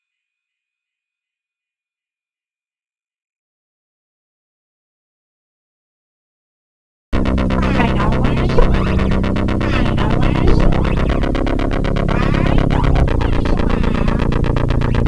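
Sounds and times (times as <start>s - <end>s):
white noise: 7.2s - 15.0s.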